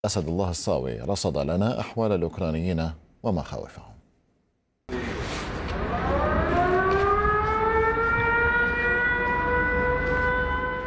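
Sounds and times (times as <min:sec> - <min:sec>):
speech: 0:00.0 - 0:03.9
air raid siren wailing: 0:04.9 - 0:10.8.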